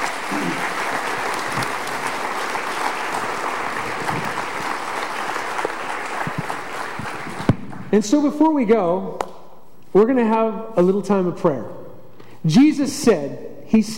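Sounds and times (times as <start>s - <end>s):
audience applause: 0.0s - 7.9s
speech: 8.0s - 9.3s, 10.0s - 11.8s, 12.4s - 13.9s.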